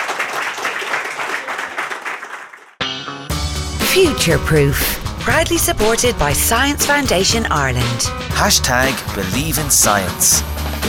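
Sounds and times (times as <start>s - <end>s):
audience applause: 0.0s - 2.8s
speech: 3.9s - 10.6s.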